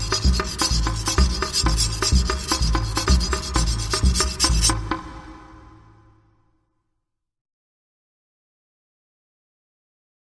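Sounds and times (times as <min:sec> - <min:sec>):
tamborim: 0:00.0 - 0:06.0.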